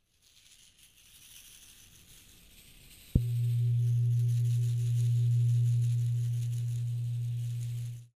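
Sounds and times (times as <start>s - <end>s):
gong: 3.2s - 8.1s.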